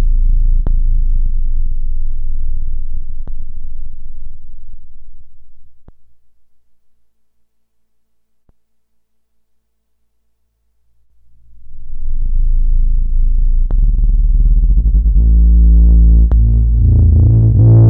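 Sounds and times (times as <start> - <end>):
Korg Volca Bass synth bass with resonant filter: 0.0 - 5.4, 11.4 - 17.8.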